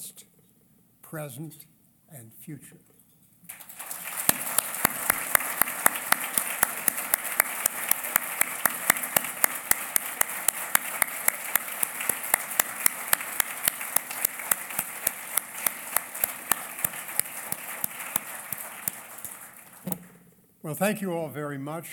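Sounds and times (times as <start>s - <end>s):
speech: 1.1s - 2.9s, 20.7s - 21.9s
audience round of applause: 3.5s - 20.1s.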